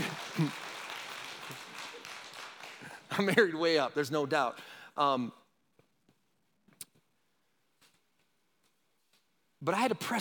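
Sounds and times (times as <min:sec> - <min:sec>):
audience clapping: 0:00.0 - 0:03.8
speech: 0:00.4 - 0:00.6, 0:03.2 - 0:05.4, 0:09.6 - 0:10.2.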